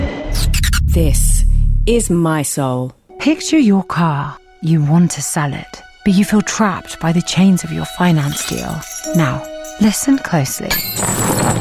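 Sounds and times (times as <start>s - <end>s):
speech: 1.0s - 1.3s, 1.9s - 11.5s
cash coins clinking and jingling: 7.5s - 11.5s.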